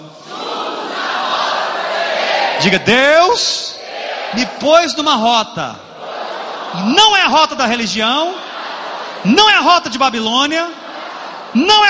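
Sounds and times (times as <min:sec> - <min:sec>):
audience shouting together with raised hands: 0:00.1 - 0:03.0, 0:03.8 - 0:04.9, 0:05.9 - 0:07.3, 0:08.0 - 0:11.8
speech: 0:02.6 - 0:03.7, 0:04.3 - 0:05.9, 0:06.7 - 0:08.4, 0:09.2 - 0:10.8, 0:11.5 - 0:11.8.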